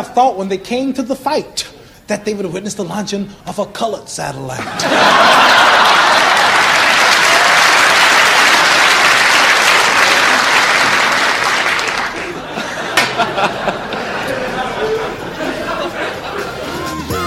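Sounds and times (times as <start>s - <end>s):
speech: 0.0s - 6.0s
laughter: 4.6s - 7.3s, 12.1s - 16.7s
frantic crowd applauding and cheering at a fight: 4.8s - 17.2s.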